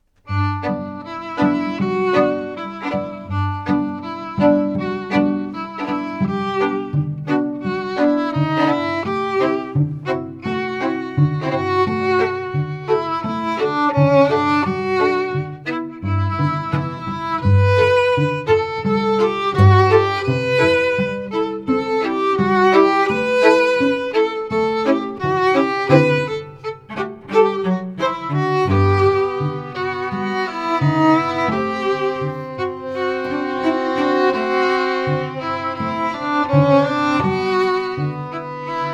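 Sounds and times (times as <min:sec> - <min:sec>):
strings: 0:00.1 - 0:38.9.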